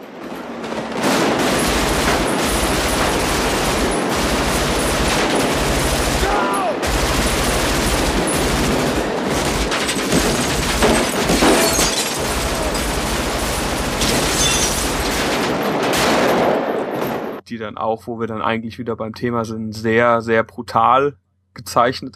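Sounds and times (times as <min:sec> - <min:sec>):
assault rifle gunfire in a street battle between police and robbers: 0:00.6 - 0:17.0
speech: 0:17.6 - 0:22.1.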